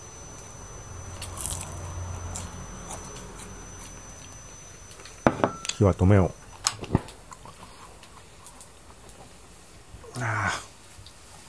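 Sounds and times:
low steady hum: 0.0 - 10.5
person chewing food: 1.1 - 5.2, 6.5 - 9.6
speech: 5.8 - 7.0.

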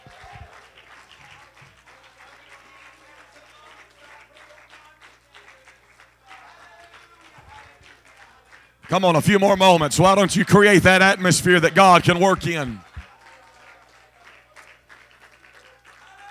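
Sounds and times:
audience clapping: 0.0 - 16.2
speech: 8.9 - 12.9
audience shouting: 8.9 - 13.0.

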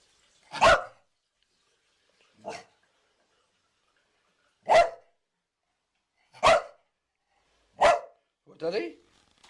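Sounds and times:
Puli dog barking in high-pitched yaps: 0.5 - 1.0, 4.6 - 5.1, 6.4 - 6.8, 7.8 - 8.2
speech: 8.6 - 9.0.

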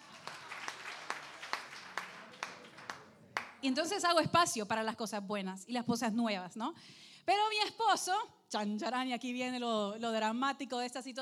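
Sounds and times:
applause: 0.0 - 3.6
speech: 3.6 - 11.2.

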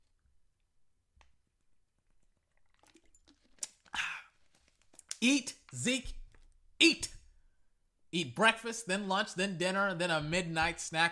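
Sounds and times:
person taking a swig of water: 2.1 - 5.2
speech: 5.2 - 6.2, 6.8 - 7.2, 8.1 - 11.1.

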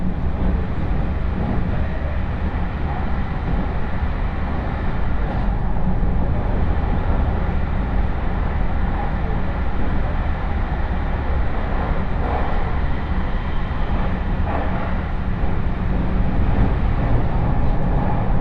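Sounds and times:
Chuo West Line train rumble inside the car: 0.0 - 18.3
faint clacks from the rails: 0.0 - 18.3.

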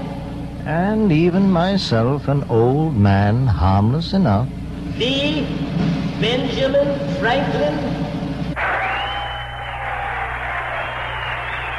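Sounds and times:
speech: 0.7 - 8.0
crowd cheering and applauding: 8.6 - 11.7.

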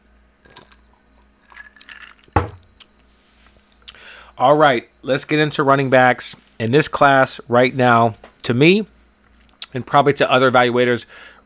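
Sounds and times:
person taking a drink: 0.5 - 4.3
speech: 4.4 - 8.9, 9.7 - 11.4.

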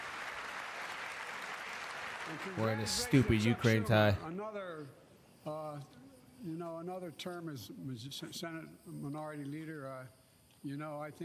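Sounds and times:
subdued audience clapping: 0.0 - 4.2
speech: 2.3 - 11.2.

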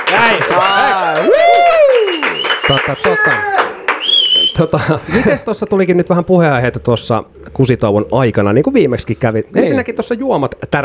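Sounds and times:
studio audience clapping: 0.0 - 4.4
studio audience cheering: 0.0 - 4.7
speech: 0.1 - 1.5, 2.7 - 3.6, 4.6 - 10.8
voice whooping: 1.2 - 2.4, 3.0 - 4.6.

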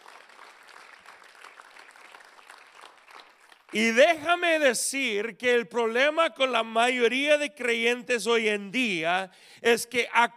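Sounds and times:
audience applause: 0.0 - 3.8
speech: 3.7 - 10.3.

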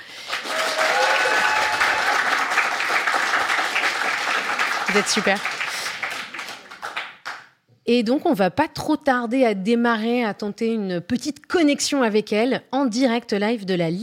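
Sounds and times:
studio audience applauding: 0.0 - 7.6
speech: 5.0 - 5.6, 7.9 - 14.0.

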